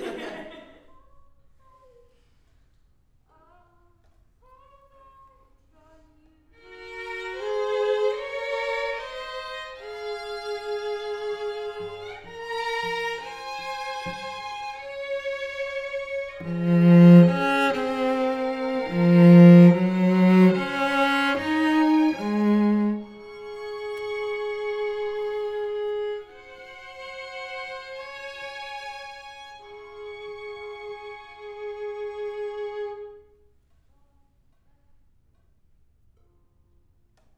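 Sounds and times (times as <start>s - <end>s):
cello: 6.6s - 33.4s.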